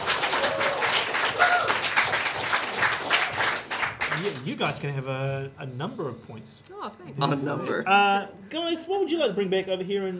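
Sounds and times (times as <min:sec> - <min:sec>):
round of applause from a group: 0:00.0 - 0:04.7
speech: 0:04.2 - 0:10.1.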